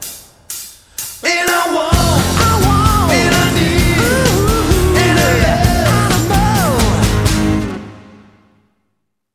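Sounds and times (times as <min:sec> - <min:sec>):
live acoustic music: 0:01.9 - 0:08.2.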